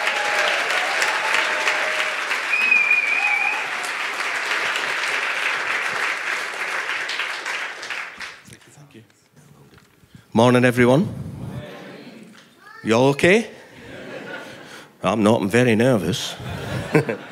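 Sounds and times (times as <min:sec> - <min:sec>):
audience applause welcoming a speaker to the stage at a church baptism service: 0:00.0 - 0:08.8
speech: 0:10.4 - 0:11.2, 0:12.8 - 0:13.6, 0:15.0 - 0:17.2
laughter: 0:13.7 - 0:14.9, 0:16.3 - 0:17.2.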